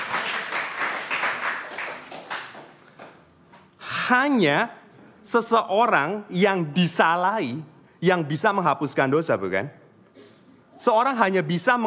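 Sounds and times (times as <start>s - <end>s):
audience applause: 0.0s - 2.8s
speech: 4.1s - 9.8s, 10.8s - 11.8s.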